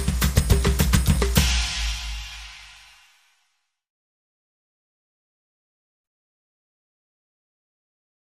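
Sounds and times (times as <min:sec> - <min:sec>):
samba loop: 0:00.0 - 0:03.3.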